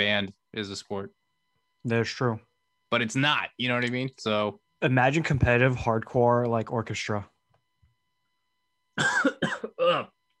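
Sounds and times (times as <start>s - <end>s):
speech: 0.0s - 1.2s, 1.8s - 7.3s, 9.0s - 10.2s
person coughing after choking: 9.0s - 10.2s.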